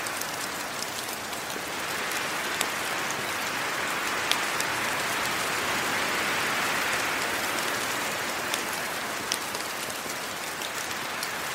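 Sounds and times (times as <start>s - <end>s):
rain pattering on forest leaves: 0.0s - 11.5s.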